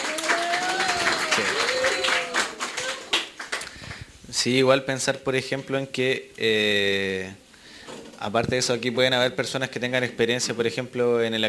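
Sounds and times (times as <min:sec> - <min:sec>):
audience applause: 0:00.0 - 0:04.0
speech: 0:04.4 - 0:07.4, 0:08.2 - 0:11.4.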